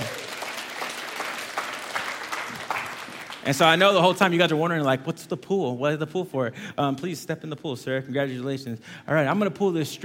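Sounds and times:
audience applause: 0.0 - 3.8
speech: 3.4 - 10.0.

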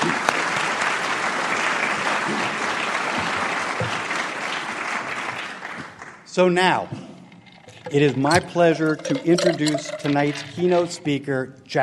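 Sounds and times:
crowd applause: 0.0 - 6.2
speech: 6.4 - 7.0, 7.9 - 11.8.

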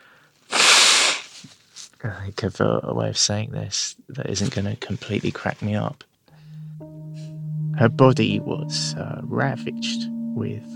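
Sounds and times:
person blowing their nose: 0.4 - 1.6
speech: 1.4 - 6.1, 7.8 - 10.7.

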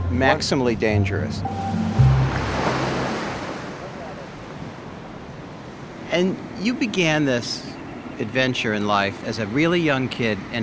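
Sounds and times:
speech: 0.1 - 1.7, 6.1 - 10.6
low tonal hum: 1.0 - 3.8
ocean surf at low tide: 1.5 - 10.6.

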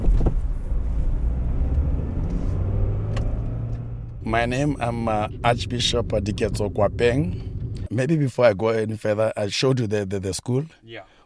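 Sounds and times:
Mercedes car engine and tyres rumbling through Dobsonville, Soweto: 0.0 - 8.0
speech: 4.3 - 11.2.

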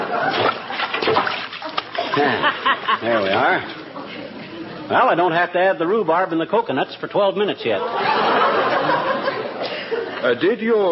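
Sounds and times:
laughter: 0.0 - 0.8, 1.6 - 4.8, 7.7 - 10.4
diced potatoes splashing into a pot of water: 0.2 - 2.2
speech: 2.2 - 3.8, 4.9 - 8.4, 10.2 - 10.9.

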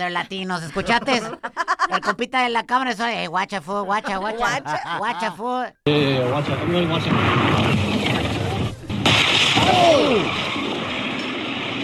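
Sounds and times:
speech: 0.0 - 7.8
laughter: 0.1 - 2.3, 3.7 - 5.7
car scraping during a collision: 6.9 - 11.8.

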